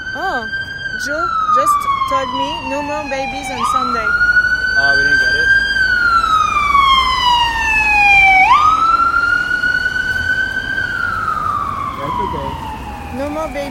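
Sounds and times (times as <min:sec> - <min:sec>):
fire alarm on a street in New York: 0:00.1 - 0:13.6.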